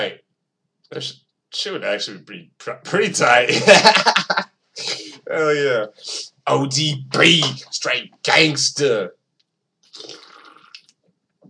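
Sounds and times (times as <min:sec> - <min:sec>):
speech: 0:00.9 - 0:09.2
laughter: 0:01.7 - 0:08.8
person sipping Coors Light: 0:05.9 - 0:06.3, 0:09.9 - 0:10.8.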